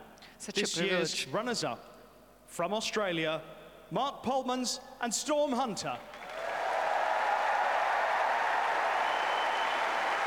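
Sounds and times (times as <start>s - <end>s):
speech: 0.4s - 6.2s
crowd cheering: 6.1s - 10.2s.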